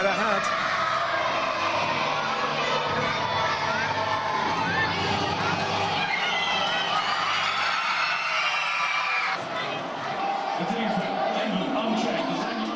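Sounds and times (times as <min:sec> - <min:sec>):
many schoolchildren cheering and shouting in a school assembly hall: 0:00.0 - 0:12.7
excited high-pitched voices and whoops: 0:06.0 - 0:09.4.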